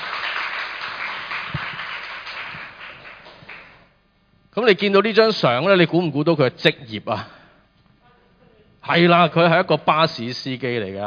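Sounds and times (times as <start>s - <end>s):
applause from a group: 0.0s - 3.9s
speech: 4.6s - 7.4s, 8.9s - 11.0s.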